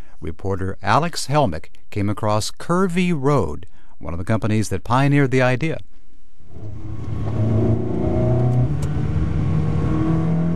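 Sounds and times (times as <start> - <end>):
speech: 0.2 - 5.9, 6.5 - 7.0
Ferrari sports car engine revving: 6.5 - 10.5.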